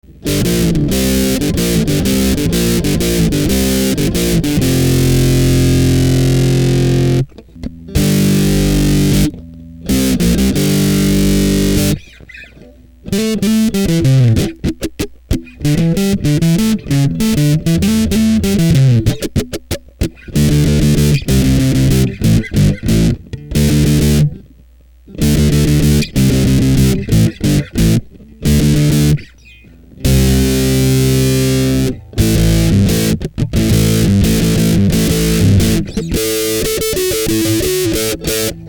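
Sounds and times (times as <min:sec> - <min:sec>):
overdrive pro effect: 0:00.0 - 0:38.6.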